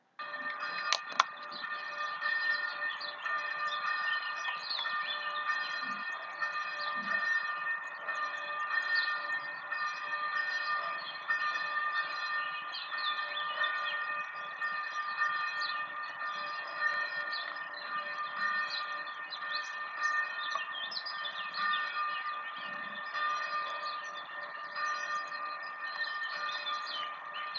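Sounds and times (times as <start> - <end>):
church bell ringing: 0.0 - 27.5.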